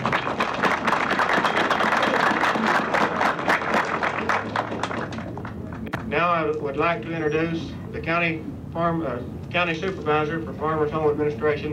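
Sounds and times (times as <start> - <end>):
crowd applauding: 0.0 - 5.9
speech: 6.4 - 11.7.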